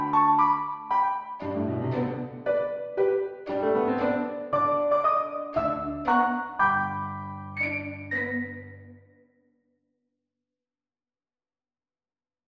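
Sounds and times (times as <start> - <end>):
violin in a backing track: 0.0 - 9.0
piano in a backing track: 0.0 - 9.1.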